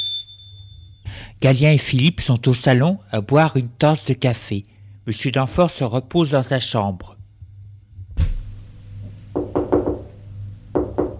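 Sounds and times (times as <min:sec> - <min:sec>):
speech: 0:01.3 - 0:07.2
knocking on the living room door: 0:09.3 - 0:10.1, 0:10.7 - 0:11.1.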